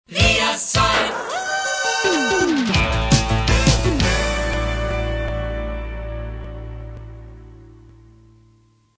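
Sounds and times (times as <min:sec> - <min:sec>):
jingle: 0:00.8 - 0:06.3.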